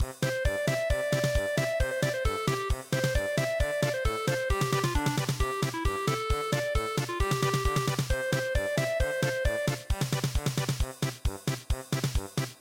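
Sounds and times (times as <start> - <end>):
polka music: 0.0 - 12.5.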